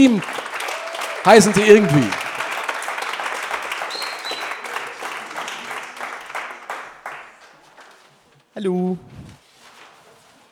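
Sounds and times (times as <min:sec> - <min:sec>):
speech: 0:00.0 - 0:00.4, 0:01.2 - 0:02.2, 0:08.6 - 0:09.1
audience applause: 0:00.0 - 0:08.0.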